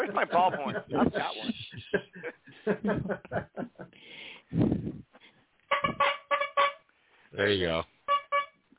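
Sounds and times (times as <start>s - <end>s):
laughter: 0.0s - 4.0s
speech: 0.2s - 1.5s
car horn honk sound effect: 5.7s - 6.8s, 8.1s - 8.6s.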